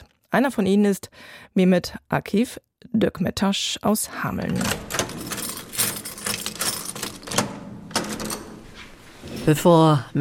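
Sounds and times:
speech: 0.3 - 5.0, 9.5 - 10.1
doors being unlocked and locked with keys: 4.4 - 9.6.

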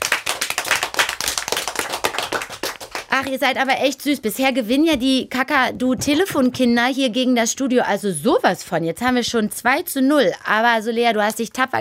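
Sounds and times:
studio audience clapping: 0.0 - 3.8
speech: 3.2 - 11.7.

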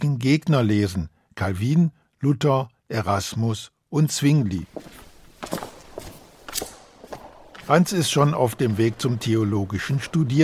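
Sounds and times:
speech: 0.1 - 5.6, 7.7 - 10.4
footsteps climbing a narrow steep spiral staircase in the Walburgiskerk in Zutphen: 4.6 - 10.4.

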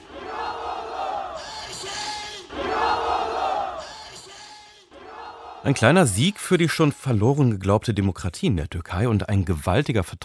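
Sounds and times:
crowd cheering at election victory: 0.0 - 6.5
speech: 5.6 - 10.2.

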